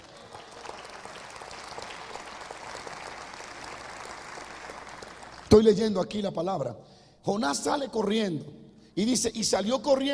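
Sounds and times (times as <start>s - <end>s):
large crowd applauding: 0.0s - 5.6s
speech: 5.5s - 10.1s.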